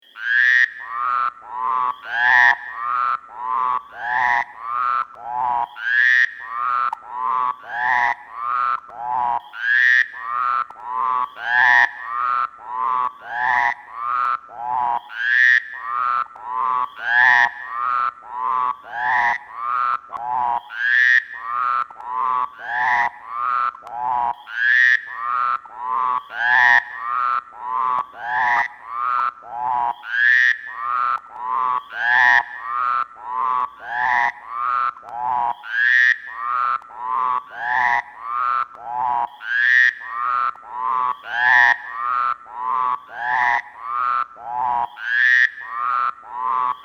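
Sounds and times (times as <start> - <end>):
frogs: 0.0 - 46.8.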